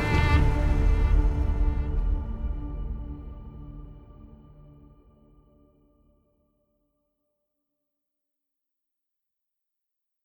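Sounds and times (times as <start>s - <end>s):
ambient music: 0.0s - 6.0s.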